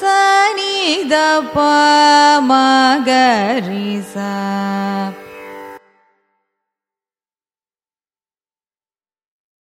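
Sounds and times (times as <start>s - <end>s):
carnatic music ascending and descending raga scale: 0.0s - 6.7s.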